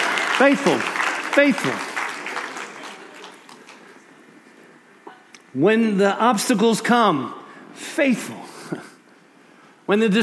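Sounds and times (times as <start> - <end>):
audience applause: 0.0 - 4.0
speech: 0.4 - 1.9, 5.5 - 8.9, 9.9 - 10.2.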